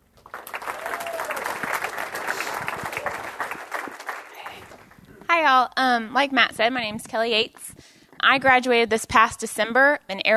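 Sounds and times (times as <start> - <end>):
audience applauding to welcome a speaker: 0.0 - 5.2
speech: 5.5 - 10.3.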